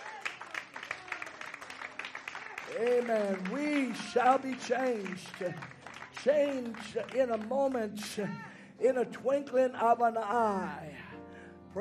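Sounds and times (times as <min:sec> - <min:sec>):
rhythmic audience clapping: 0:00.0 - 0:08.5
speech: 0:02.7 - 0:11.1.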